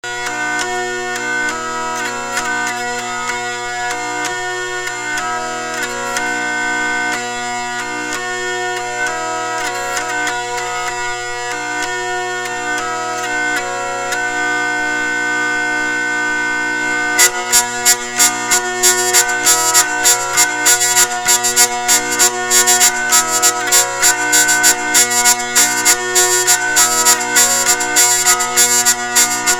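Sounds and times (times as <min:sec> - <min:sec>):
hurdy-gurdy playing without octave: 0:00.0 - 0:29.5.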